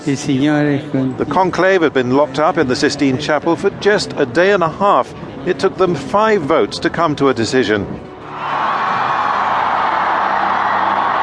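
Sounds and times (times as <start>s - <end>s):
speech: 0.0s - 8.6s
crowd cheering: 8.2s - 11.2s.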